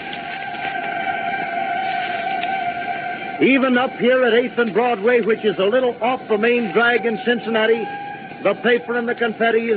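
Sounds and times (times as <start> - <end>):
celebration whistles in Cincinnati: 0.1 - 3.4, 6.7 - 8.7
speech: 3.4 - 9.7.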